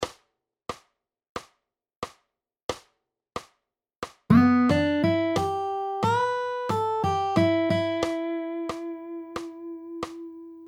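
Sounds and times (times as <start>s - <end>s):
pentatonic riffs: 4.3s - 10.6s.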